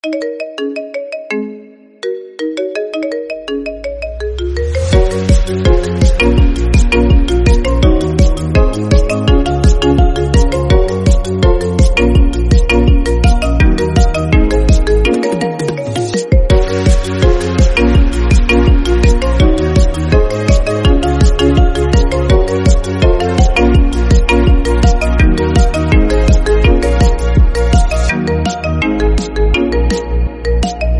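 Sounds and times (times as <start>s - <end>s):
ringtone remix: 0.0s - 30.9s.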